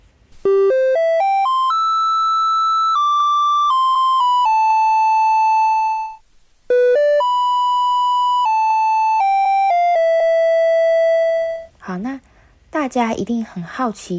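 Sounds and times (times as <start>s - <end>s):
Taiwanese garbage truck melody: 0.4s - 11.7s
speech: 12.9s - 14.1s.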